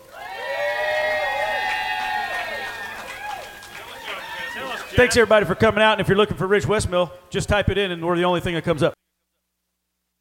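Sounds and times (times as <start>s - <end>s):
audience yelling and cheering: 0.0s - 6.0s
speech: 5.0s - 9.0s.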